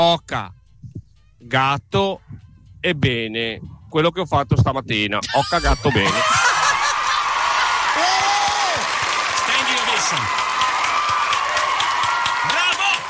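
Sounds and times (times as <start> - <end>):
speech: 0.0 - 6.4
laughter: 5.2 - 8.2
cheers and swooping whoops: 6.0 - 13.0
large crowd applauding in a standing ovation: 6.1 - 13.0.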